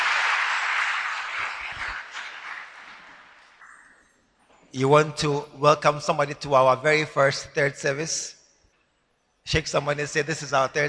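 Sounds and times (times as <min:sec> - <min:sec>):
church congregation applause after a prayer at a service: 0:00.0 - 0:03.7
speech: 0:04.7 - 0:08.4, 0:09.5 - 0:10.8.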